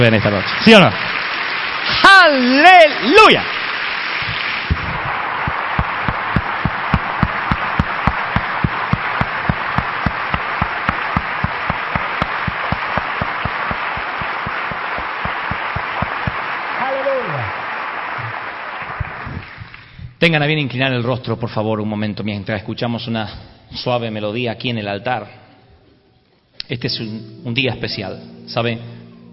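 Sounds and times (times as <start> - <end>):
speech: 0.0 - 1.2, 1.9 - 3.6, 20.2 - 25.4, 26.7 - 28.9
audience applause: 0.0 - 20.0.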